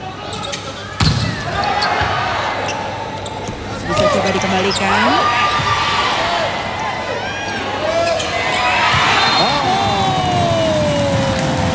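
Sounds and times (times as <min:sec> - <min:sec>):
crowd noise: 0:00.0 - 0:11.7
volleyball served hard during a match: 0:01.0 - 0:02.1
speech: 0:04.3 - 0:05.7.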